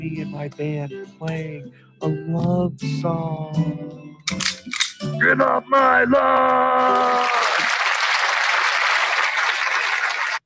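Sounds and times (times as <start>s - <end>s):
speech: 0.0s - 4.5s, 5.1s - 7.4s
loud dense applause from many hands: 6.8s - 10.4s.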